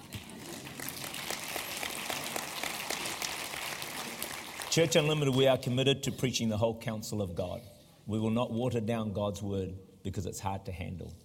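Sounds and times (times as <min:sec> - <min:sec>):
audience applause: 0:00.0 - 0:05.4
speech: 0:04.8 - 0:11.2.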